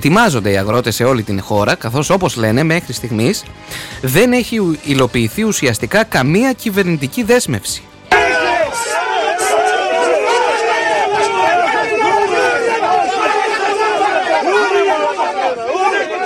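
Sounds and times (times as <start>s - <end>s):
speech: 0.0s - 8.0s
protesting farmers shouting: 8.1s - 16.2s.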